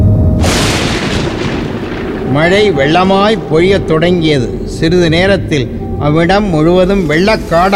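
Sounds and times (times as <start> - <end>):
thunderclap: 0.0 - 6.2
speech: 2.4 - 7.7.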